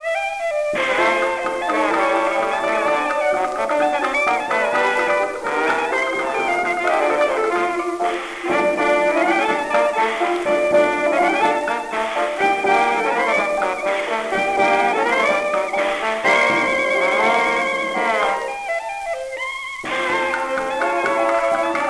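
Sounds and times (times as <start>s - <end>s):
jukebox music: 0.0s - 21.8s.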